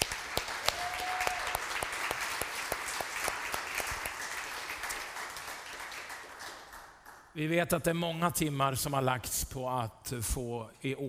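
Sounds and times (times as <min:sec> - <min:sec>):
audience applauding in a large church room: 0:00.0 - 0:07.3
speech: 0:07.4 - 0:11.0.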